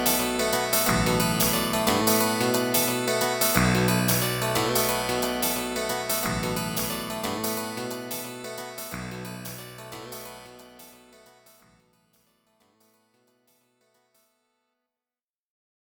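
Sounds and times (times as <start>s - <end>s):
retrowave music on Amiga: 0.0s - 10.2s.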